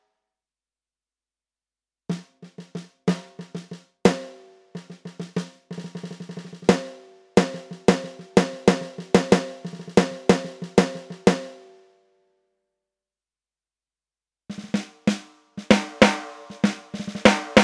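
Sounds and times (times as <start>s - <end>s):
snare drums: 2.1s - 11.6s, 14.5s - 17.6s.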